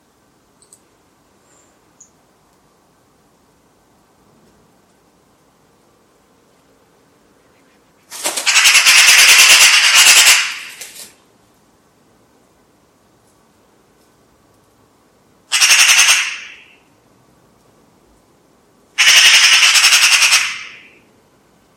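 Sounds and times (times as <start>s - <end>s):
bird harsh pulsed rattling squawk: 8.4s - 10.8s, 15.5s - 16.8s, 19.0s - 21.1s.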